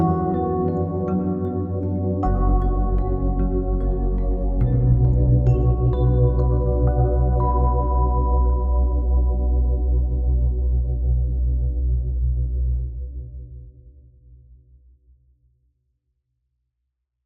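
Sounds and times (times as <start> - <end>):
electric 88-key piano: 0.0 - 12.8.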